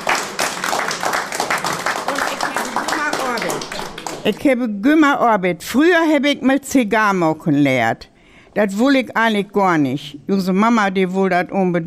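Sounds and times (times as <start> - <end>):
audience applause: 0.0 - 4.3
speech: 4.2 - 11.8.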